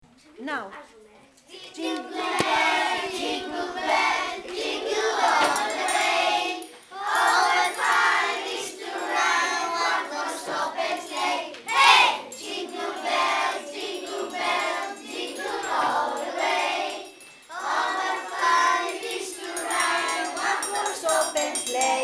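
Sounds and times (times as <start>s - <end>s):
Christmas song: 1.5s - 22.0s.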